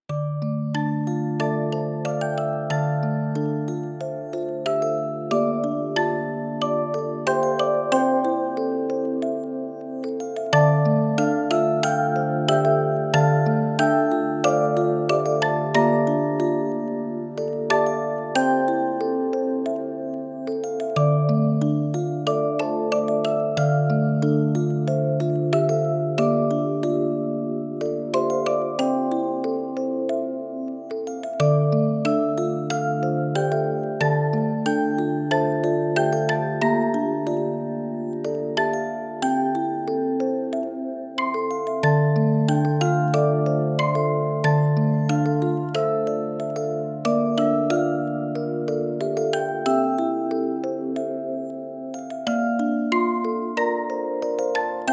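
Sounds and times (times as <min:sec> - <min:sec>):
music box melody: 0:00.1 - 0:54.9.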